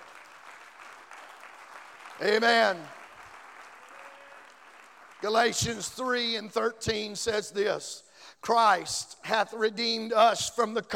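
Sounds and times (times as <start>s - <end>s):
audience hand clapping: 0.0s - 5.5s
speech: 2.2s - 3.0s, 5.2s - 10.9s.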